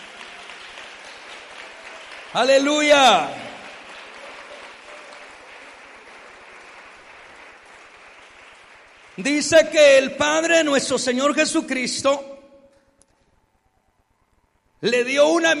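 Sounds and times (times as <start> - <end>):
audience applause: 0.0 - 9.8
speech: 2.3 - 3.4, 9.2 - 12.3, 14.8 - 15.5.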